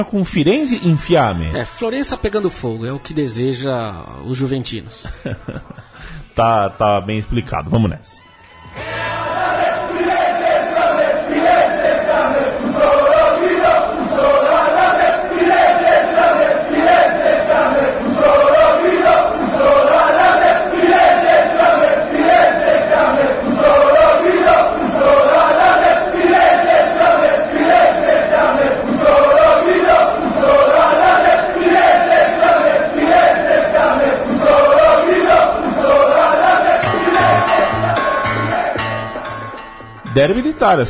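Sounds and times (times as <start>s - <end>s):
speech: 0.0s - 9.0s, 40.2s - 40.8s
laughter: 4.9s - 6.4s
football supporters chanting a stadium song: 8.7s - 40.0s.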